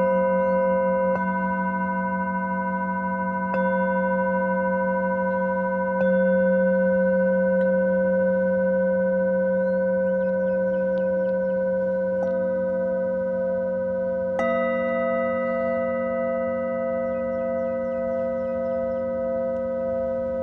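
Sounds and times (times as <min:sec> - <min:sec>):
singing bowls ringing in Cancun, Mexico: 0:00.0 - 0:20.4
seabird calls: 0:09.6 - 0:12.6, 0:16.8 - 0:19.9.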